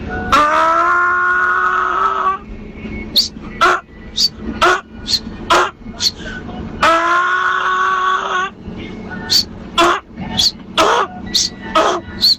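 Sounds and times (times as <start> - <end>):
man's voice imitating a donkey braying: 0.3 - 2.3, 3.2 - 6.2, 6.8 - 8.5, 9.3 - 12.3.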